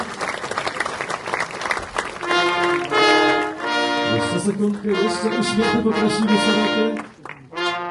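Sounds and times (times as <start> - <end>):
audience applause at a Lidzbark county 15th anniversary medal ceremony: 0.0 - 7.8
speech: 4.4 - 7.1.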